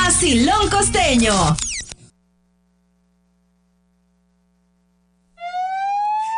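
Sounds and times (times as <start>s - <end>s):
speech: 0.1s - 1.7s
ambulance siren: 5.4s - 6.3s.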